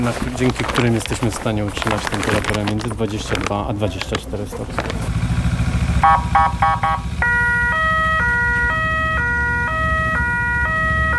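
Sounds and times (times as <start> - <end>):
speech: 0.0 - 5.3, 6.0 - 7.3
emergency motorcycle engine rumbling: 0.0 - 11.1
new emergency motorcycle siren: 5.2 - 11.1.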